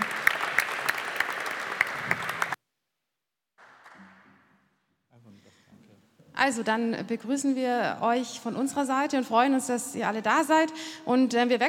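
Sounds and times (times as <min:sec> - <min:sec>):
audience applause: 0:00.0 - 0:02.6
speech: 0:06.4 - 0:11.6.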